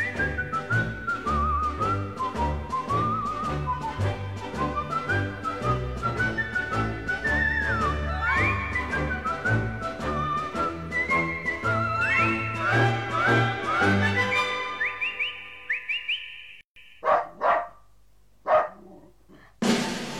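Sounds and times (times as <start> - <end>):
whistle-like melody with gliding notes: 0.0 - 16.6
small dog yapping: 17.0 - 17.8, 18.5 - 19.1.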